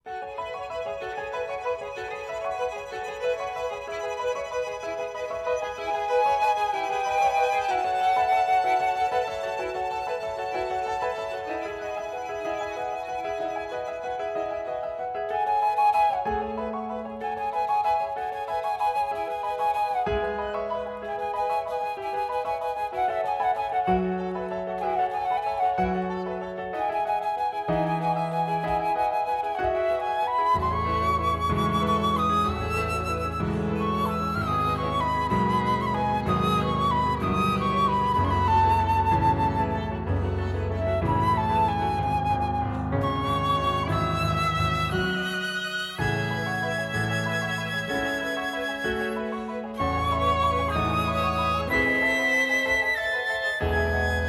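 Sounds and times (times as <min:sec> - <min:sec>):
flute: 0:00.0 - 0:54.2
violin: 0:00.0 - 0:54.2.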